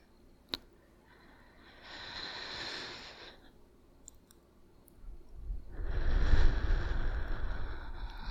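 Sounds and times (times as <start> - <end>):
slow deep breathing in and out: 1.0 - 3.6, 5.4 - 8.3.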